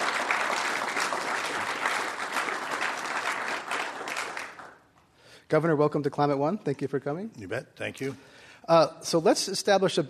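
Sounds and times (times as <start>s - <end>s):
audience applause welcoming a speaker at the Commonwealth Club: 0.0s - 5.1s
speech: 5.5s - 10.0s.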